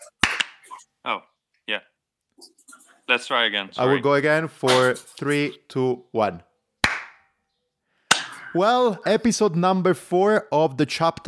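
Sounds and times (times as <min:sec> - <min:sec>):
single hand clap: 0:00.0 - 0:00.8, 0:06.8 - 0:07.2
speech: 0:01.0 - 0:02.5, 0:03.1 - 0:06.5, 0:08.5 - 0:11.2.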